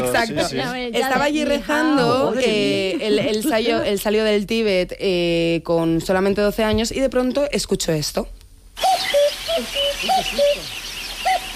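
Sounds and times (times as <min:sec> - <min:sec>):
speech: 0:00.1 - 0:10.8
common cuckoo calling: 0:08.8 - 0:11.5.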